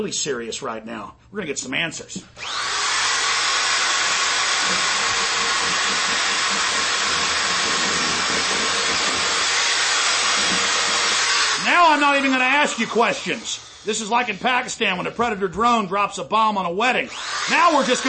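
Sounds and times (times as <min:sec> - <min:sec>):
speech: 0:00.0 - 0:02.9, 0:11.9 - 0:18.0
power drill running: 0:02.4 - 0:15.9, 0:17.0 - 0:18.0.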